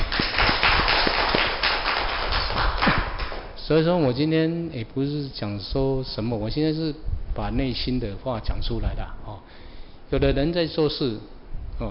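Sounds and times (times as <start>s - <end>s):
crowd applause: 0.0s - 3.4s
speech: 3.7s - 11.8s.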